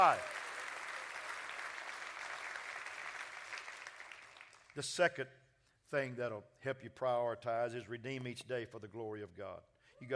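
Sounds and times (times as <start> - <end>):
speech: 0.0 - 0.3, 4.8 - 10.1
audience clapping hands: 0.0 - 4.9.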